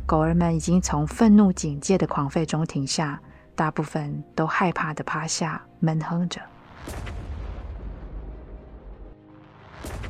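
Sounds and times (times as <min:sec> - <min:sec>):
speech: 0:00.1 - 0:07.2
explosion at sea: 0:06.8 - 0:10.0.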